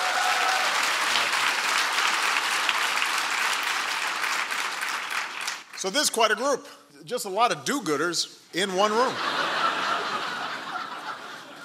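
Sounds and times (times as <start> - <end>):
audience round of applause: 0.0 - 5.8
speech: 5.8 - 9.4
laughter: 8.9 - 11.6.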